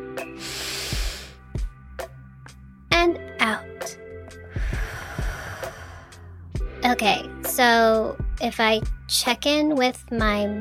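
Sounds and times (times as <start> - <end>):
deep breath drawn in: 0.2 - 1.6, 4.4 - 6.5
speech: 3.0 - 4.0, 6.8 - 10.5.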